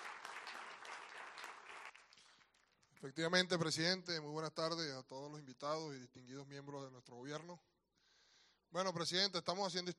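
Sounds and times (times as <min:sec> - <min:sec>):
faint applause at a government event: 0:00.0 - 0:02.7
speech: 0:03.0 - 0:07.7, 0:08.7 - 0:09.9.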